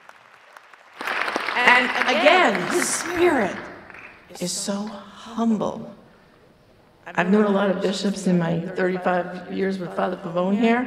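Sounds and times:
applause: 0.0s - 4.3s
speech: 1.8s - 3.7s, 4.3s - 6.0s, 7.1s - 10.8s.

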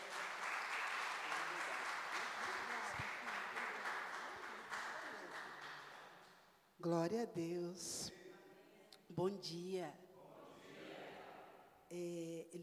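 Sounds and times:
audience applauding: 0.0s - 6.2s
speech: 6.8s - 8.2s, 9.2s - 10.0s, 11.9s - 12.6s.

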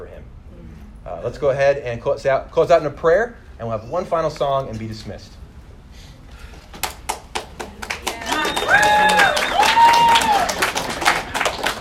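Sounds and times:
speech: 1.1s - 5.4s
audience applause: 6.8s - 11.7s.

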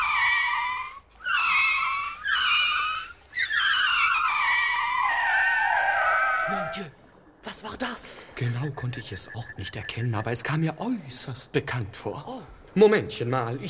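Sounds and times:
car braking hard with tires skidding: 0.0s - 6.9s
speech: 6.8s - 7.0s, 7.6s - 13.6s.

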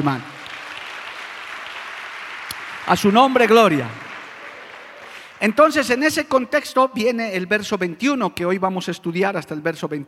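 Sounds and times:
speech: 0.0s - 0.3s, 2.9s - 4.0s, 5.4s - 10.0s
audience applause: 0.0s - 5.5s.

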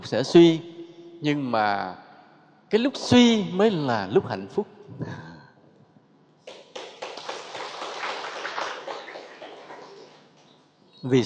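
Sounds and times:
speech: 0.0s - 2.0s, 2.7s - 5.2s, 11.0s - 11.2s
audience member clapping hands at a talk: 6.4s - 10.6s.

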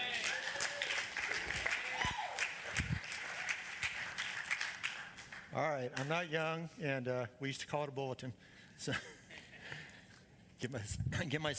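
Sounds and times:
audience clapping for a speaker: 0.0s - 6.2s
speech: 5.6s - 9.2s, 10.6s - 11.5s.

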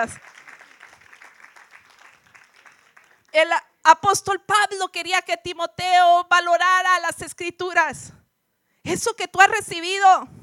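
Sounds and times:
speech: 0.0s - 0.4s, 3.4s - 8.2s, 8.8s - 10.4s
audience applause: 0.0s - 3.3s.

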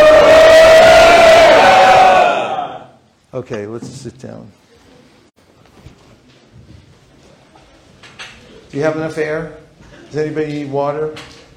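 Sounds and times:
audience shouting a chant together: 0.0s - 2.9s
speech: 3.4s - 4.6s, 8.7s - 11.4s.

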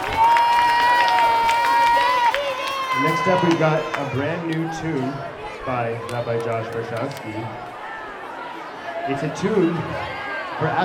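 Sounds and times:
high sustained cheer or whistle: 0.0s - 4.4s
crowd clapping and cheering: 0.0s - 7.8s
speech: 3.2s - 7.7s, 9.0s - 10.8s.

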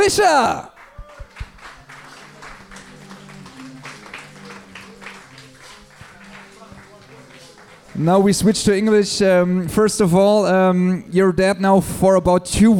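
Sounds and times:
audience applause: 0.0s - 8.9s
speech: 0.1s - 0.7s, 8.0s - 12.7s.

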